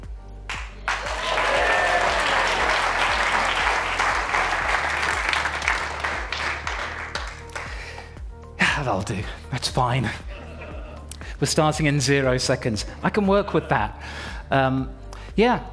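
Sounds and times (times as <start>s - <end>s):
audience applause: 0.5s - 7.8s
speech: 8.9s - 10.3s, 11.4s - 15.7s
laughter: 10.2s - 11.1s.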